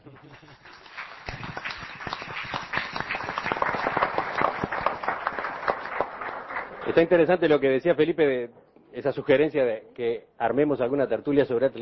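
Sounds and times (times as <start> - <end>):
audience applause: 0.0 - 7.6
speech: 6.9 - 11.8.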